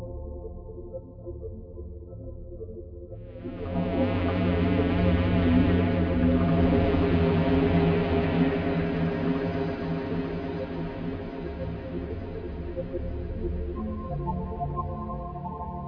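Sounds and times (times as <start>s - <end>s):
ambience: 3.1s - 15.8s.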